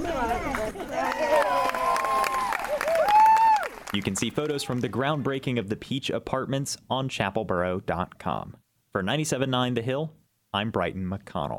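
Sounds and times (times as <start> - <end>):
crowd cheering at a ceremony: 0.0 - 5.4
speech: 3.9 - 11.5.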